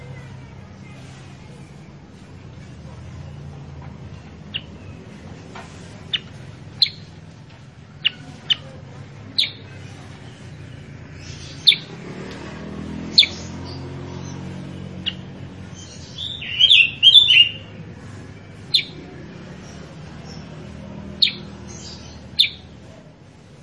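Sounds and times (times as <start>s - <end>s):
Sooty-headed bulbul calls: 6.0s - 7.1s, 7.9s - 12.0s, 15.0s - 17.7s, 18.6s - 19.1s, 21.2s - 22.8s.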